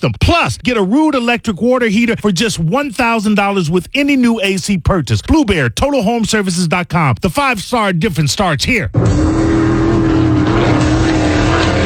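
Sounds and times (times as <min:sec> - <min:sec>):
speech: 0:00.0 - 0:09.8
racing powerboat engines roaring: 0:09.0 - 0:11.8.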